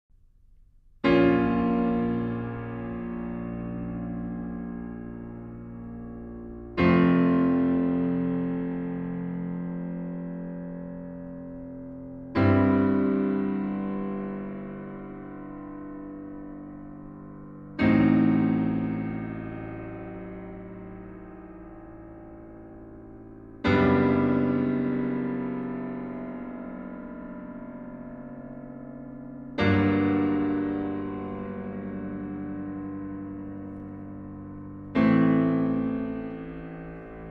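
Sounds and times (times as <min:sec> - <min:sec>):
piano trio playing a largo: 0:01.0 - 0:37.2.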